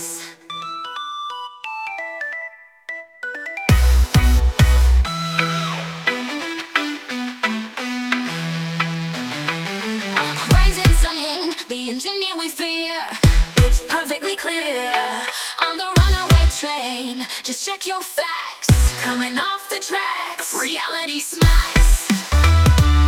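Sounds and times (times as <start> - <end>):
reggae music: 0.0 - 11.5, 13.2 - 16.9, 18.7 - 19.2, 21.4 - 23.0.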